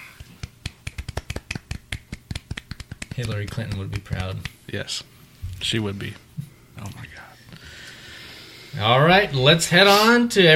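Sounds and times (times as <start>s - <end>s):
soft polite golf clap: 0.2s - 4.6s
speech: 3.2s - 7.0s, 8.7s - 10.5s.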